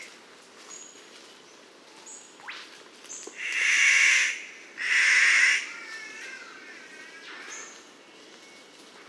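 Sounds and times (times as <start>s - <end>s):
rifle bird of paradise calling: 2.0s - 7.9s.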